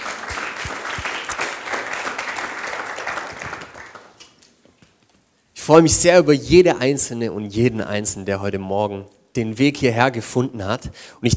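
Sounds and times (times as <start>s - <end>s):
audience clapping: 0.0s - 4.6s
speech: 5.7s - 11.3s.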